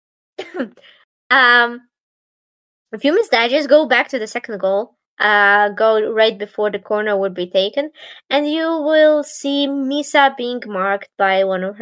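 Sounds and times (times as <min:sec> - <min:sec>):
person coughing: 0:00.4 - 0:01.0
speech: 0:00.5 - 0:01.9, 0:02.9 - 0:11.8.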